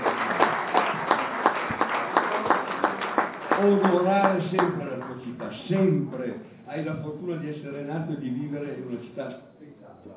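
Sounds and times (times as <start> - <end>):
crowd clapping in a rhythmic pattern: 0.0 - 6.3
speech: 3.6 - 4.9, 5.6 - 10.1.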